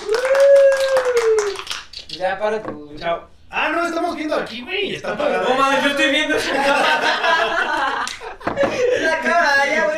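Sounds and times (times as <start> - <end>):
brisk uneven applause from a few people: 0.0 - 1.9
speech: 2.2 - 9.9
laughter: 5.0 - 9.9.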